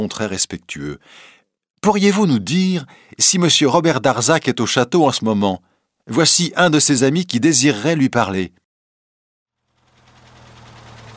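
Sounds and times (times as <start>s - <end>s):
speech: 0.0s - 8.6s
car engine idling with a faint rhythmic knock: 9.6s - 11.1s.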